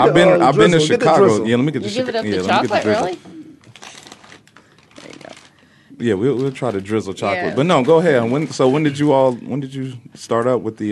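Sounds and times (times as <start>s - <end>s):
speech: 0.0s - 3.3s, 6.0s - 10.8s
snack bag crinkling as it is opened: 3.6s - 5.6s.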